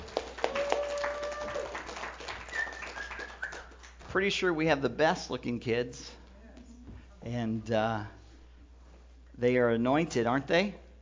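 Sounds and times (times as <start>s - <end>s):
audience cheering and applauding children: 0.0s - 3.8s
speech: 4.1s - 6.2s, 7.2s - 8.2s, 9.4s - 10.8s.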